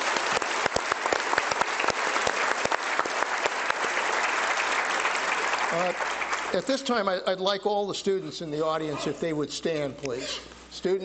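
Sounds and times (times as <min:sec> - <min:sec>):
audience applause for a panel of reporters: 0:00.0 - 0:06.6
speech: 0:05.7 - 0:11.0.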